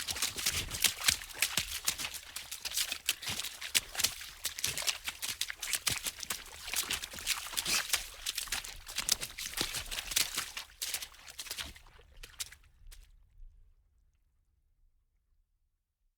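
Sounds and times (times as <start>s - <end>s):
water splashing fast: 0.0s - 12.6s.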